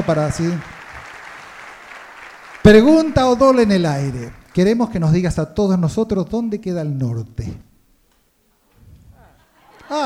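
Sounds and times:
speech: 0.0 - 0.7, 2.6 - 7.6, 9.9 - 10.0
crowd applause: 0.0 - 4.6.

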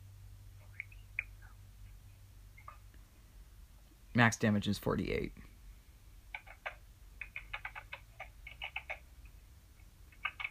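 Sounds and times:
low steady hum: 0.0 - 10.4
speech: 4.2 - 5.5
rapid typing on a keyboard: 6.3 - 9.0, 10.1 - 10.4.

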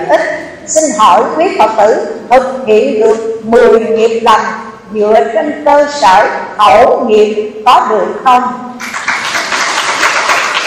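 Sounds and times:
speech: 0.7 - 8.7
audience applause: 8.8 - 10.6.

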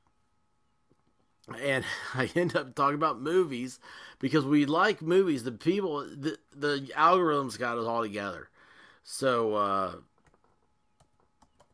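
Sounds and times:
speech: 1.5 - 10.1
typing on a computer keyboard: 10.2 - 11.7.

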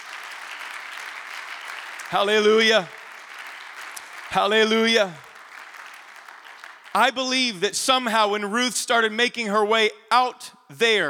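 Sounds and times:
audience clapping hands: 0.0 - 7.6
speech: 2.1 - 3.0, 4.3 - 5.2, 6.9 - 11.0.

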